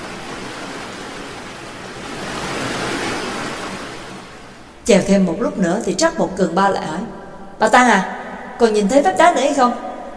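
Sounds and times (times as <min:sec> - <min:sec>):
ocean wave crashing: 0:00.0 - 0:04.9
speech: 0:04.8 - 0:09.8.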